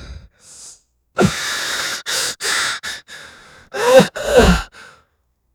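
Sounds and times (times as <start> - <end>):
sick old man groaning: 1.2 - 3.1, 3.8 - 4.8.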